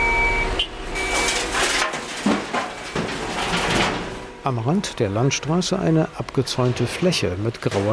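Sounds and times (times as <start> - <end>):
high-pitched truck backup beep: 0.0 - 1.4
heavy dump truck reversing at construction site: 0.0 - 7.4
speech: 4.4 - 7.9.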